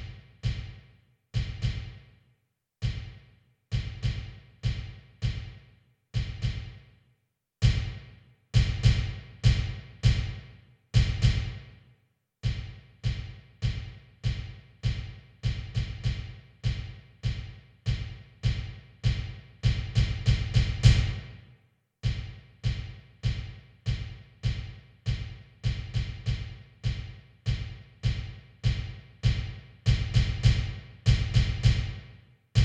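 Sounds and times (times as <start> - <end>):
bass drum: 1.4 - 2.0, 3.8 - 5.5, 7.6 - 8.0, 8.6 - 10.4, 11.0 - 11.6, 12.4 - 21.3, 22.0 - 32.0.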